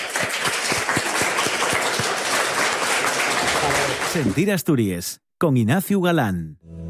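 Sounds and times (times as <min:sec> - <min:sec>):
audience applause: 0:00.0 - 0:04.6
rhythmic evenly spaced claps: 0:00.0 - 0:04.6
speech: 0:04.2 - 0:06.8.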